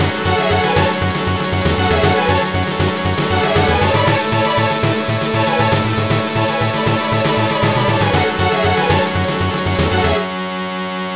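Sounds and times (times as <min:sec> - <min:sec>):
story mode character theme music: 0:00.0 - 0:10.3.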